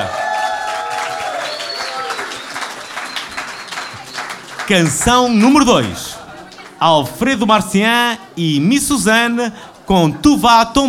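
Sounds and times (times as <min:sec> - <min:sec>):
audience cheering at an alternative song festival: 0:00.0 - 0:06.4
audience clapping for a song at an alternative song festival: 0:00.0 - 0:06.8
whistle: 0:01.4 - 0:04.4
speech: 0:04.7 - 0:06.1, 0:06.8 - 0:10.8.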